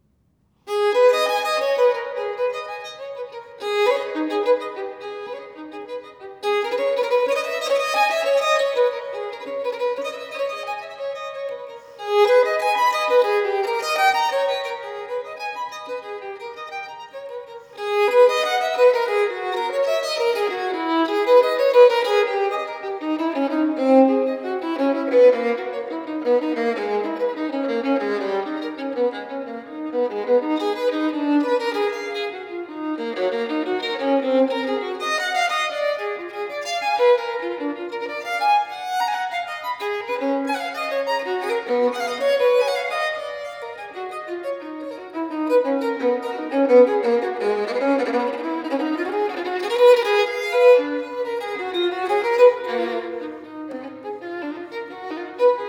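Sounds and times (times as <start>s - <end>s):
violin sonata allegro: 0.0s - 55.6s.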